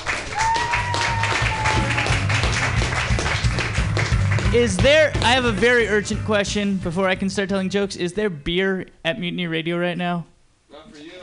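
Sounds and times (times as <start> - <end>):
audience applause: 0.0 - 4.8
speech: 4.5 - 11.2.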